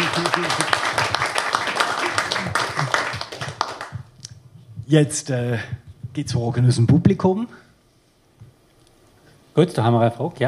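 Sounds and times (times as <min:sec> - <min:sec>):
audience applause: 0:00.0 - 0:04.0
speech: 0:04.9 - 0:07.6, 0:09.6 - 0:10.4.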